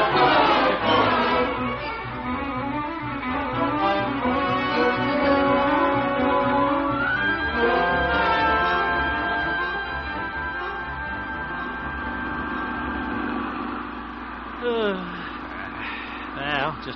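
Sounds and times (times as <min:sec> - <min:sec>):
swooping whine: 0:00.0 - 0:16.4
tractor engine idling: 0:07.0 - 0:16.9.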